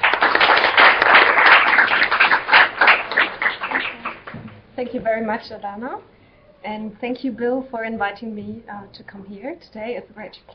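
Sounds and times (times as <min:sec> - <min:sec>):
audience clapping to welcome a speaker at a public talk: 0:00.0 - 0:04.6
speech: 0:04.9 - 0:10.5.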